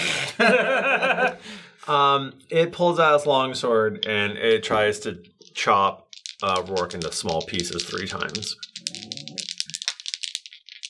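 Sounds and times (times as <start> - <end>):
laughter: 0.1 - 1.4
speech: 0.4 - 0.7, 1.9 - 8.6
handful of plastic and metal dice rolling and clattering: 3.9 - 10.8.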